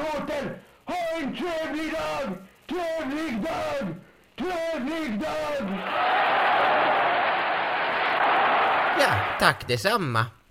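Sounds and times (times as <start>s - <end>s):
speech: 0.2s - 6.8s, 9.0s - 10.4s
audience cheering and applauding inside a shop: 5.8s - 9.5s.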